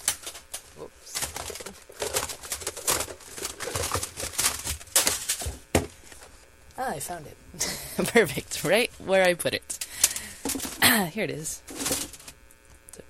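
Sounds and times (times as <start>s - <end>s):
rummaging through a pile of tapes in an interview archive: 0.0s - 6.4s, 9.8s - 10.8s, 11.7s - 12.4s
speech: 6.9s - 9.8s, 10.9s - 11.7s.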